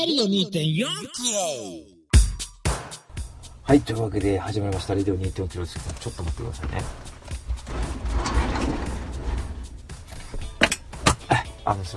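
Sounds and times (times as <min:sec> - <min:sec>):
speech: 0:00.0 - 0:02.0, 0:03.7 - 0:07.1, 0:11.7 - 0:11.9
sliding glass door being closed: 0:06.5 - 0:11.1.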